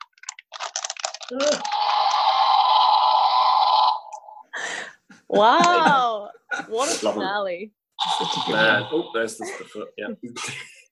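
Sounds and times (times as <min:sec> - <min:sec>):
speech: 0:01.3 - 0:01.9, 0:05.3 - 0:10.7
toy T-Rex roar: 0:01.4 - 0:04.4, 0:08.0 - 0:09.1.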